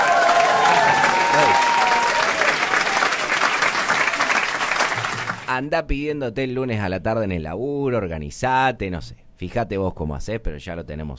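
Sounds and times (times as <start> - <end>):
applause: 0.0 - 5.5
speech: 5.6 - 11.1.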